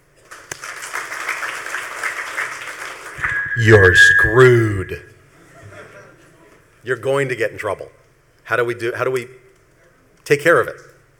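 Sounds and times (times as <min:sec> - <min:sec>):
audience clapping: 0:00.2 - 0:03.2
speech: 0:03.6 - 0:05.1, 0:06.8 - 0:09.4, 0:10.3 - 0:10.9.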